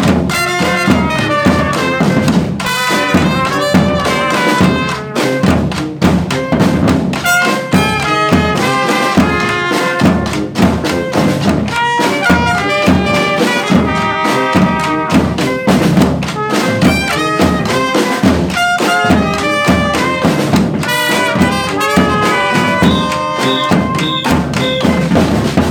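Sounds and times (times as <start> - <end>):
brass and batucada drumming: 0.0 - 25.6.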